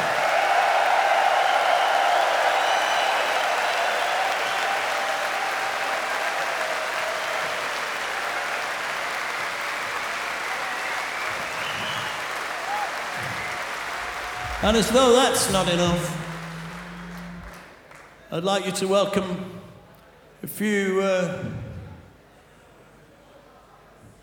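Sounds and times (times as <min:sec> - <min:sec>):
audience applauding to welcome a percussionist onstage: 0:00.0 - 0:18.2
speech: 0:14.6 - 0:16.2, 0:18.3 - 0:19.5, 0:20.6 - 0:21.6.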